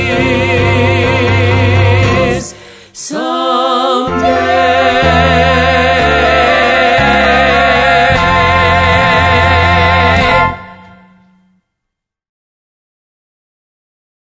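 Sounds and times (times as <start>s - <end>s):
reprise vocals: 0.0s - 11.3s.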